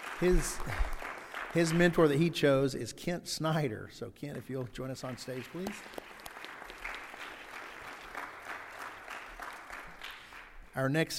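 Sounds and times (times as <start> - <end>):
audience applause: 0.0 - 2.2, 5.0 - 10.7
speech: 0.2 - 0.9, 1.5 - 6.0, 10.8 - 11.1.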